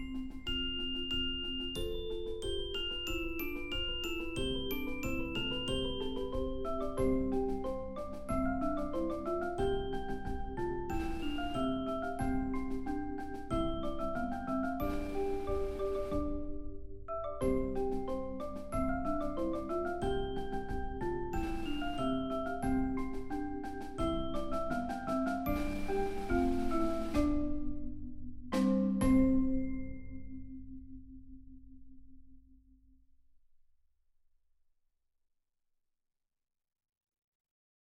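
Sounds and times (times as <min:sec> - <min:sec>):
snare drum in a percussion ensemble: 0:00.0 - 0:16.4, 0:17.4 - 0:27.6, 0:28.6 - 0:29.4
timpani in a percussion ensemble: 0:00.0 - 0:16.6, 0:17.4 - 0:29.8
xylophone in a percussion ensemble: 0:00.0 - 0:30.8
2 marimbas in a percussion ensemble: 0:00.0 - 0:30.9
bells in a percussion ensemble: 0:00.0 - 0:30.9
vibraphone in a percussion ensemble: 0:00.0 - 0:31.1.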